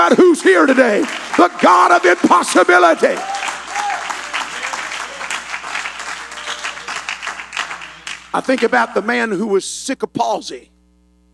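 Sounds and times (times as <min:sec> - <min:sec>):
speech: 0:00.0 - 0:03.5, 0:08.4 - 0:10.7
audience clapping hands: 0:00.0 - 0:09.0.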